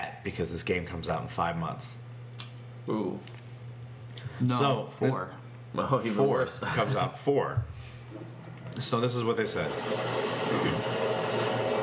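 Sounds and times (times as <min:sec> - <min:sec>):
speech: 0:00.2 - 0:02.1, 0:02.9 - 0:03.4, 0:04.2 - 0:11.1
subway train passing: 0:09.7 - 0:11.8.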